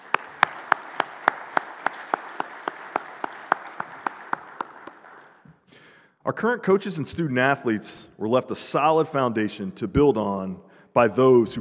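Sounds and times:
audience applause: 0:00.0 - 0:05.4
speech: 0:06.3 - 0:11.5.

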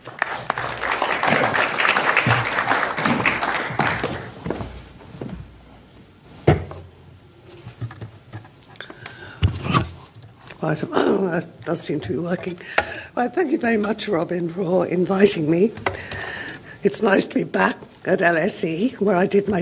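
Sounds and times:
audience applause welcoming a professor before a lecture on social care at LSE: 0:00.0 - 0:04.4
speech: 0:10.6 - 0:16.2, 0:16.8 - 0:19.6.

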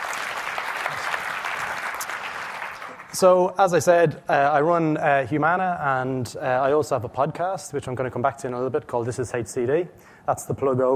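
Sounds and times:
audience applause: 0:00.0 - 0:03.2
speech: 0:03.1 - 0:10.9.

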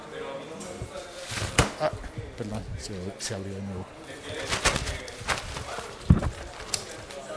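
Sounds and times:
wet umbrella closing and shaking: 0:01.2 - 0:02.0, 0:04.2 - 0:07.3
speech: 0:01.8 - 0:04.7.

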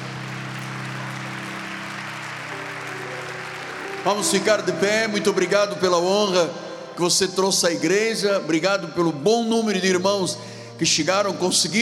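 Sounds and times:
audience applauding: 0:00.0 - 0:05.9
sustained organ or keyboard chord: 0:00.0 - 0:11.8
speech: 0:04.0 - 0:11.8.

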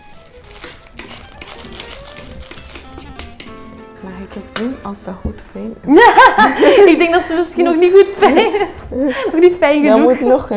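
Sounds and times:
knife cutting a lemon on a board: 0:00.4 - 0:03.6
speech: 0:04.0 - 0:10.5.

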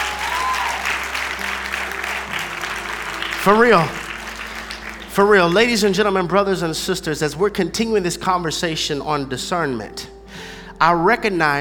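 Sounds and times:
audience clapping: 0:00.0 - 0:06.3
speech: 0:03.4 - 0:04.0, 0:05.2 - 0:11.5.

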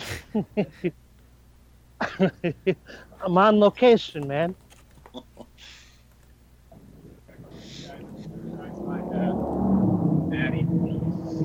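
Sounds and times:
laughter: 0:00.0 - 0:01.0, 0:02.0 - 0:03.0
speech: 0:00.4 - 0:01.0, 0:02.0 - 0:04.6
cars rushing past on a street: 0:07.4 - 0:11.4
wind on a street: 0:07.4 - 0:11.4.

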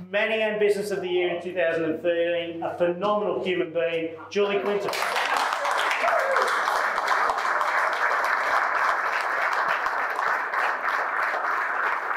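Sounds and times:
speech: 0:00.1 - 0:05.2
audience applause: 0:04.6 - 0:12.1.

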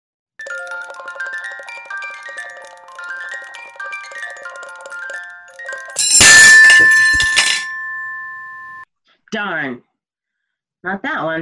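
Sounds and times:
tinkling music box melody: 0:00.4 - 0:08.8
music box smashed with sledgehammer: 0:05.5 - 0:08.8
jangled ringing tones and metallic hum: 0:06.0 - 0:08.8
speech: 0:09.3 - 0:09.9, 0:10.8 - 0:11.3.

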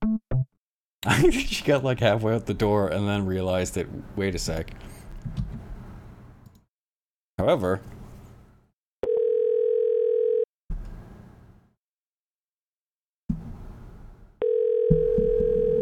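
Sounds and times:
speech: 0:01.0 - 0:05.4, 0:07.4 - 0:08.0
telephone dial tone after hang-up: 0:09.0 - 0:10.5, 0:14.4 - 0:15.8.

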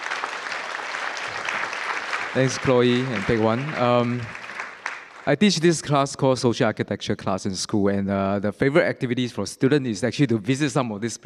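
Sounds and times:
audience applause: 0:00.0 - 0:05.6
speech: 0:02.3 - 0:04.4, 0:05.2 - 0:11.2.

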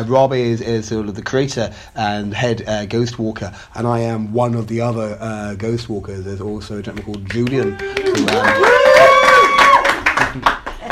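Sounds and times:
speech: 0:00.0 - 0:09.1, 0:10.4 - 0:10.6
audience applause: 0:07.2 - 0:10.9.

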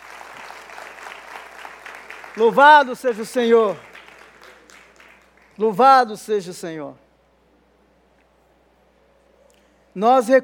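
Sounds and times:
applause: 0:00.0 - 0:05.8
speech: 0:02.4 - 0:03.9, 0:05.6 - 0:07.0, 0:10.0 - 0:10.4.

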